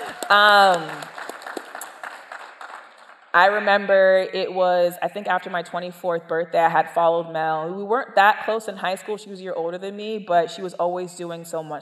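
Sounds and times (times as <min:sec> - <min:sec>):
small audience clapping in scattered bursts: 0:00.0 - 0:03.4
speech: 0:00.3 - 0:01.1, 0:03.4 - 0:11.7.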